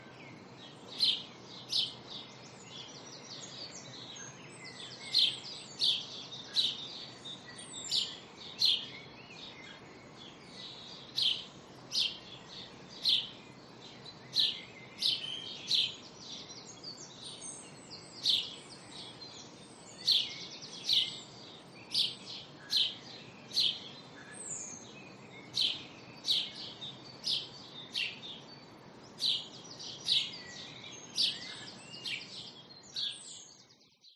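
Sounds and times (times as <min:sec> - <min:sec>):
early morning birds in a residential area: 0:00.0 - 0:34.1.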